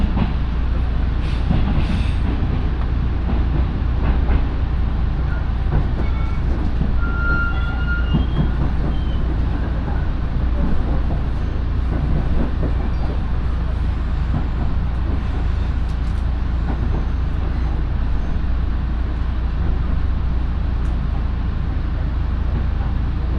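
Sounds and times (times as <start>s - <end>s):
Minobu Line local train rumbling: 0.0s - 23.3s
high squeal: 6.0s - 9.3s.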